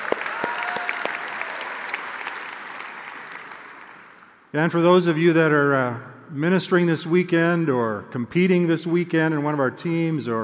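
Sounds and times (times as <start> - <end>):
audience applause welcoming visitors at an Indiana Wesleyan University gathering: 0.0 - 4.4
speech: 4.5 - 10.4.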